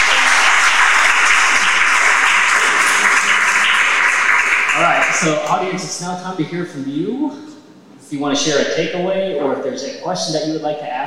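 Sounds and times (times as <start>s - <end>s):
audience applause: 0.0s - 5.8s
speech: 5.2s - 7.5s, 8.1s - 11.0s.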